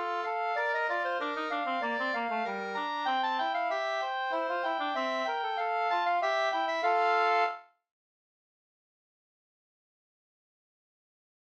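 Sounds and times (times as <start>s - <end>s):
quadrille music: 0.0s - 7.6s.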